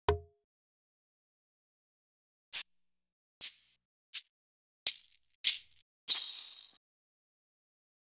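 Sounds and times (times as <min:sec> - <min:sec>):
afro shaker: 0:03.4 - 0:04.3, 0:04.9 - 0:06.8.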